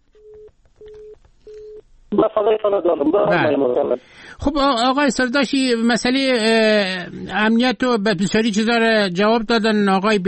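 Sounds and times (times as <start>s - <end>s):
telephone busy tone after a cut-off line: 0.2s - 1.8s
speech: 2.1s - 10.2s.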